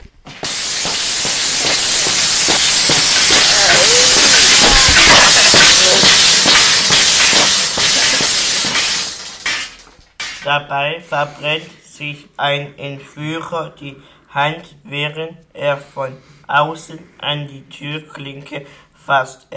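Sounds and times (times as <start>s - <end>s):
welding a door open with fire: 0.4s - 10.2s
speech: 10.5s - 19.5s.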